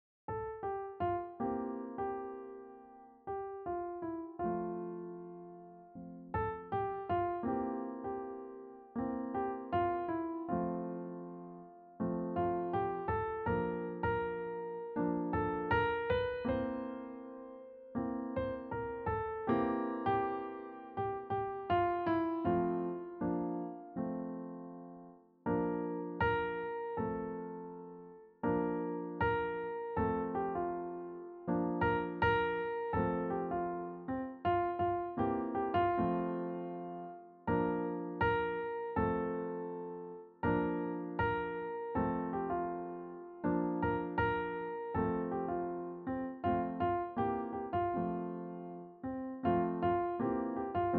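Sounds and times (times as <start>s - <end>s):
solo piano: 0.0s - 50.9s.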